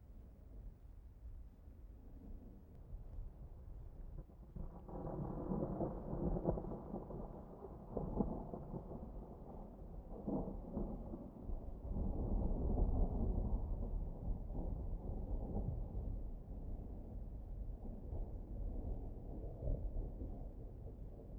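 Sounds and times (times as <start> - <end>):
distant thunder: 4.2 - 21.3.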